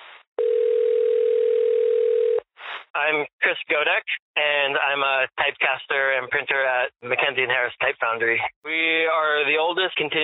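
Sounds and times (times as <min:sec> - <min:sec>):
telephone dial tone: 0:00.4 - 0:02.4
speech: 0:03.0 - 0:10.2.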